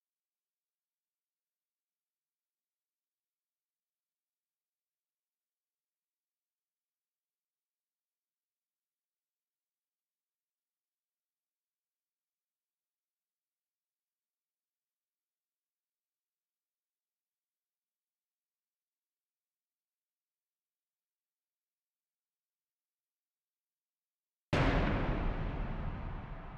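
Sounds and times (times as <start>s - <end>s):
thunder clap: 24.6s - 26.5s.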